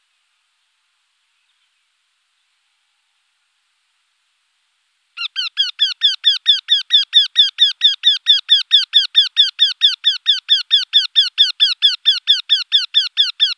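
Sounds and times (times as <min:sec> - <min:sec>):
woodpecker song: 0:05.2 - 0:13.5.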